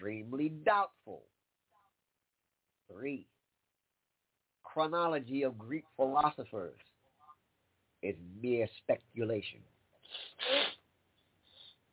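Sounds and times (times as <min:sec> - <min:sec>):
speech: 0:00.0 - 0:01.3, 0:02.9 - 0:03.3, 0:04.6 - 0:06.9, 0:08.0 - 0:10.7
person sniffling: 0:10.0 - 0:10.8.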